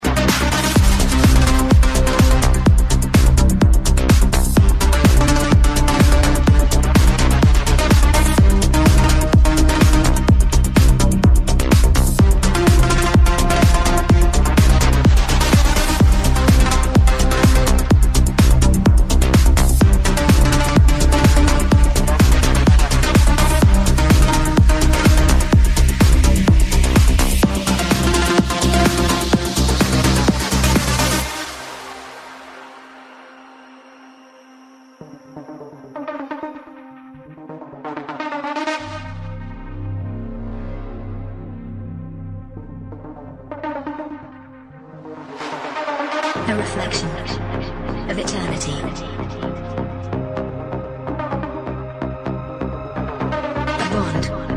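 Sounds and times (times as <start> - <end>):
progressive techno house music: 0.0 - 34.4, 35.0 - 54.5.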